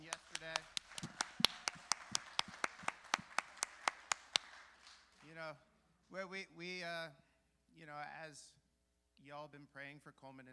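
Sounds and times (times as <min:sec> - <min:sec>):
audience clapping: 0:00.0 - 0:05.4
speech: 0:05.5 - 0:08.6, 0:09.2 - 0:10.5.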